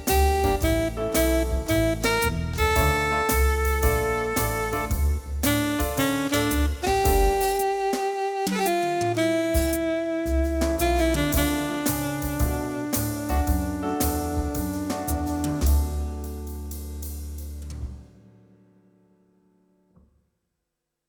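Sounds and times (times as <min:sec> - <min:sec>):
acoustic jazz on a Korg Pa4x keyboard: 0:00.0 - 0:18.8.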